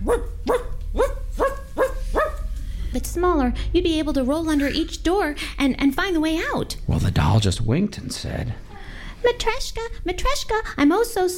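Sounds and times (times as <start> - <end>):
dog barking in a yard: 0.0 - 2.5
speech: 3.0 - 8.6, 9.2 - 11.3.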